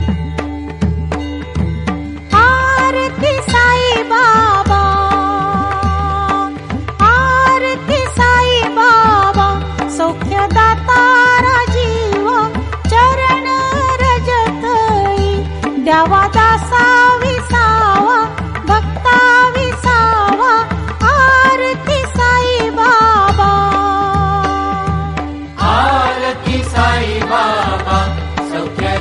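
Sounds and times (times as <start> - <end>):
Aarti devotional ringtone music: 0.0 - 29.0.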